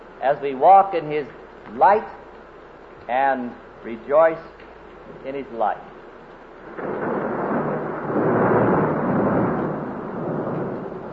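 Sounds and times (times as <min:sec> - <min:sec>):
speech: 0:00.2 - 0:02.2, 0:03.1 - 0:05.9
thunder rolling: 0:06.6 - 0:11.1.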